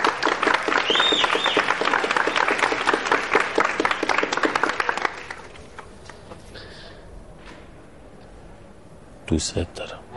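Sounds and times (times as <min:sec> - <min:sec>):
audience applause at a university event: 0:00.0 - 0:06.0
shrill whistles: 0:00.7 - 0:02.6
speech: 0:09.3 - 0:10.0.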